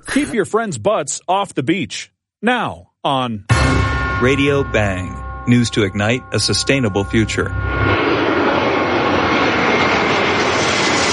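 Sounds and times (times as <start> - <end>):
speech: 0.1 - 8.0
jet airliner engine passing overhead: 3.6 - 11.1.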